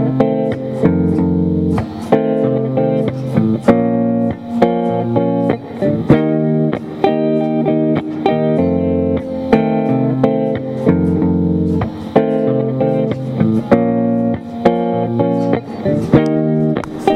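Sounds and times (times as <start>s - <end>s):
guitar playing in melodic minor mode V: 0.0s - 17.1s.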